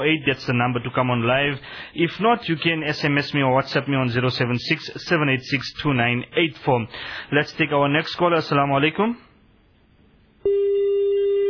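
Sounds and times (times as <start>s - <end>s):
speech: 0.0s - 9.3s
telephone line tone after a dropped call: 10.4s - 11.4s.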